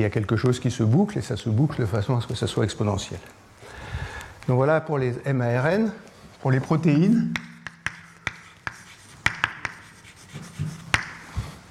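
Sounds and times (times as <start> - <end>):
speech: 0.0 - 3.8, 4.5 - 7.5
writing taps and scratches while writing an equation: 7.4 - 11.6.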